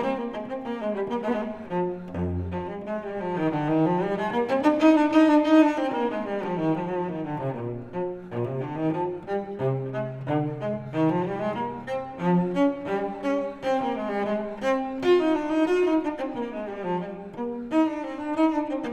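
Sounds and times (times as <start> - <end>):
solo cello suite in E: 0.0 - 18.9.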